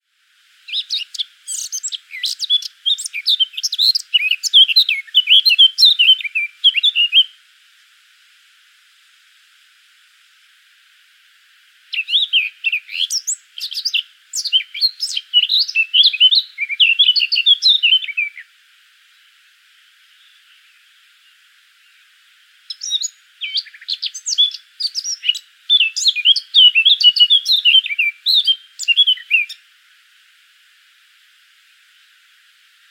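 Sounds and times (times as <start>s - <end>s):
Eurasian blackcap warbling song: 0.7s - 7.3s, 11.9s - 18.5s, 20.0s - 29.6s.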